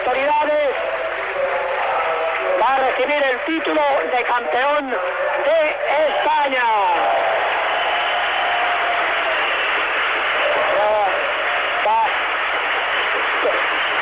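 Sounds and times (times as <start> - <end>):
applause for a sports team: 0.0 - 14.0
speech: 2.7 - 7.4.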